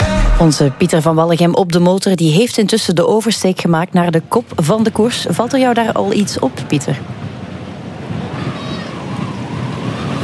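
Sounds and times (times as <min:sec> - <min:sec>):
speech: 0:00.4 - 0:07.2
strong wind blowing across the microphone: 0:04.2 - 0:10.2.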